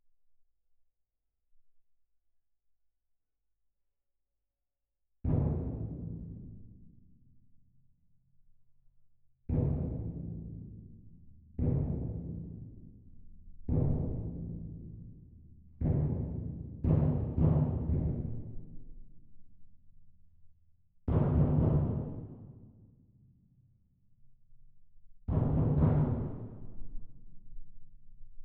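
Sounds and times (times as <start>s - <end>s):
percussion: 5.2s - 7.4s, 9.5s - 20.0s, 21.0s - 23.5s, 25.3s - 28.2s.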